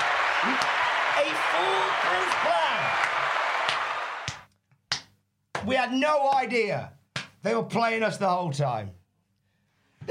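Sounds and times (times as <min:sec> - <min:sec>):
round of applause: 0:00.0 - 0:04.5
speech: 0:00.4 - 0:03.4, 0:05.6 - 0:09.0.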